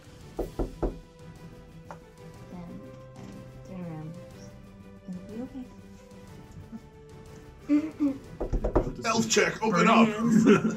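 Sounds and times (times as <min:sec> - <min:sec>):
knocking on a door: 0:00.4 - 0:01.1, 0:08.4 - 0:09.0
laughter: 0:06.5 - 0:07.0, 0:09.8 - 0:10.7
speech: 0:07.7 - 0:08.3, 0:09.2 - 0:10.7.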